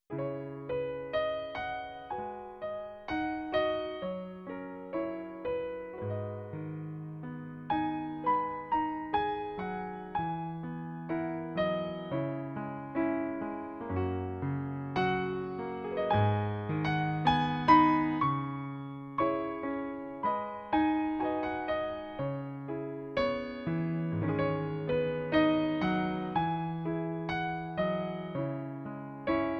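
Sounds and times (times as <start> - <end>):
solo piano: 0.0 - 29.5.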